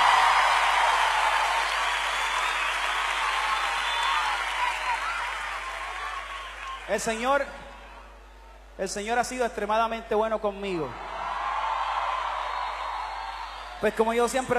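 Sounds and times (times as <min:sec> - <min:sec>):
audience applause: 0:00.0 - 0:07.1, 0:11.0 - 0:14.0
speech: 0:06.9 - 0:07.6, 0:08.8 - 0:11.0, 0:13.8 - 0:14.5.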